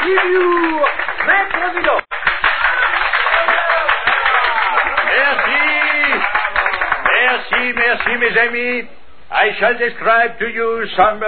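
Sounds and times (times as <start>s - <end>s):
audience applause: 0.0s - 8.2s
crowd voices and cheers: 2.7s - 7.0s
speech: 8.0s - 11.2s.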